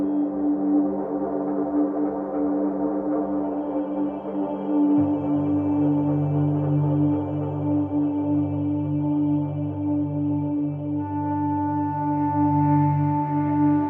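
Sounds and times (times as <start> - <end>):
synth pads: 0.0 - 13.8.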